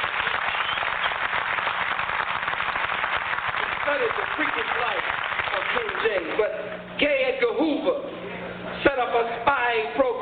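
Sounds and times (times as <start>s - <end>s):
audience applause: 0.0s - 6.4s
speech: 4.0s - 10.1s.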